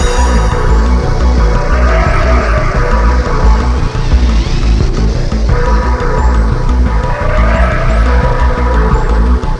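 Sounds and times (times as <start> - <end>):
music: 0.0 - 9.5.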